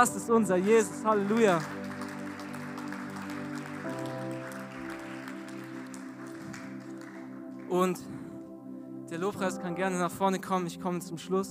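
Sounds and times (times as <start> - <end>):
speech: 0.0 - 1.8, 7.7 - 8.2, 9.1 - 11.4
sustained keyboard chords: 0.0 - 11.4
audience applause: 0.8 - 7.6.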